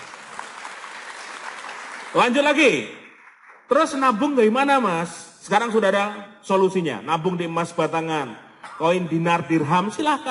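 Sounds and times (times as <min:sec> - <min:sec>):
audience applause: 0:00.0 - 0:02.6
speech: 0:02.2 - 0:03.0, 0:03.7 - 0:10.3.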